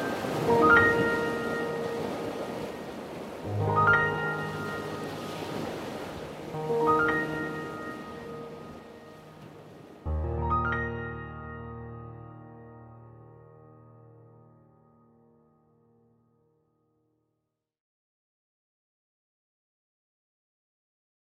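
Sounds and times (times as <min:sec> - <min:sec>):
ocean waves: 0:00.0 - 0:14.5
piano playing: 0:00.0 - 0:16.7.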